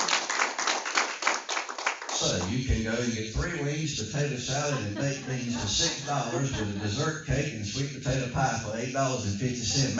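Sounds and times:
audience hand clapping: 0:00.0 - 0:03.5
laughter: 0:02.2 - 0:09.9
speech: 0:02.2 - 0:09.9.

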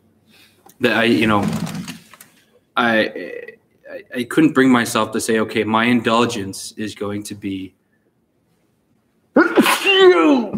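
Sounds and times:
speech: 0:00.8 - 0:01.6, 0:02.8 - 0:07.8, 0:09.4 - 0:10.5
person sneezing into the elbow: 0:09.4 - 0:10.5.

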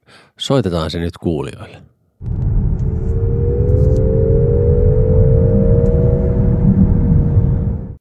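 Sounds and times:
speech: 0:00.4 - 0:02.4
artificial engine sound in sport driving mode: 0:02.2 - 0:07.9.

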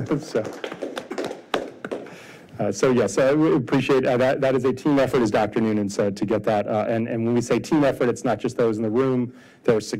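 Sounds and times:
speech: 0:00.0 - 0:00.8, 0:02.6 - 0:09.9
one person clapping: 0:00.0 - 0:02.2.

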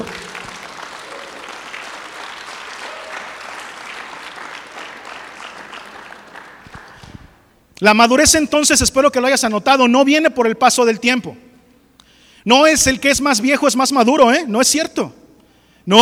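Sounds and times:
audience applause: 0:00.0 - 0:07.3
speech: 0:07.8 - 0:11.4, 0:12.4 - 0:15.2, 0:15.9 - 0:16.0.

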